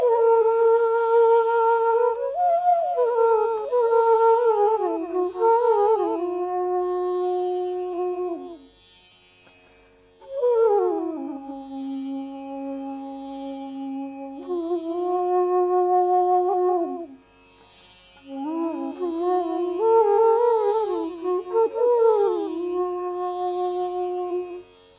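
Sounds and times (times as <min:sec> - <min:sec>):
raga on flute: 0:00.0 - 0:24.9.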